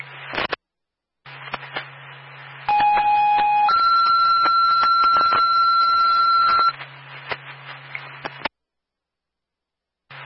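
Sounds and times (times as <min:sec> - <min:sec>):
crackling radio static: 0:00.0 - 0:00.6, 0:01.3 - 0:08.5
fire dispatch alert tones: 0:02.7 - 0:06.7.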